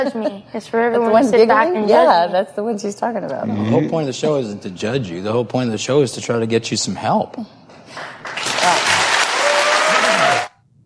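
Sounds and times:
speech: 0.0s - 8.5s
crowd applause: 7.9s - 10.6s.

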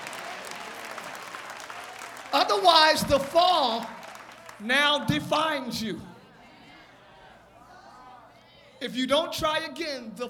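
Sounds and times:
audience clapping hands: 0.0s - 5.1s
speech: 2.5s - 4.0s, 4.6s - 6.1s, 8.8s - 10.2s.

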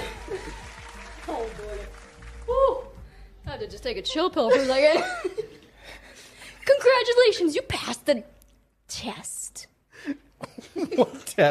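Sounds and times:
audience applauding: 0.0s - 3.1s
speech: 3.7s - 5.4s, 6.8s - 8.3s, 9.0s - 9.4s, 11.0s - 11.4s.

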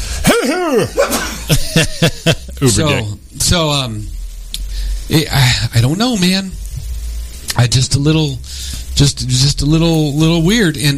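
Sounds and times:
person sneezing: 0.1s - 1.6s
laughter: 0.3s - 3.0s
speech: 0.4s - 4.2s, 5.1s - 6.6s, 7.6s - 10.9s.

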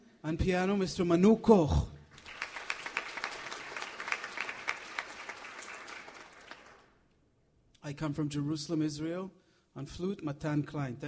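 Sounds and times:
speech: 0.2s - 1.9s, 7.9s - 11.0s
audience applause: 2.1s - 7.0s.

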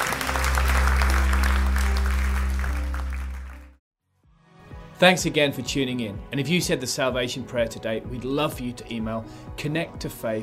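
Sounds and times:
audience clapping during a church service: 0.0s - 3.8s
speech: 5.0s - 10.4s.

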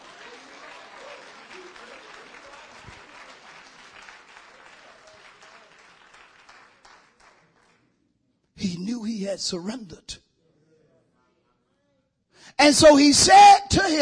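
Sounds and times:
audience applause: 0.0s - 7.8s
speech: 8.6s - 10.2s, 12.6s - 13.9s.

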